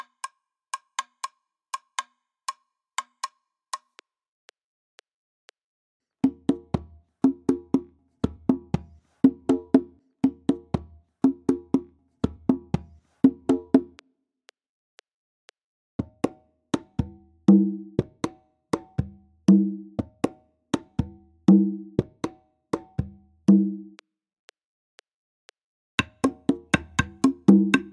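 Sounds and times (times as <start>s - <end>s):
Latin American rumba yambu rhythm: 6.2s - 14.0s, 16.0s - 24.0s, 26.0s - 27.9s.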